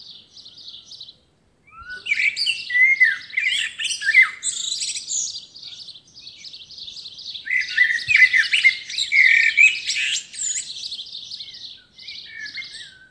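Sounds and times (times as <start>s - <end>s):
common blackbird fluted song: 0.0s - 13.0s.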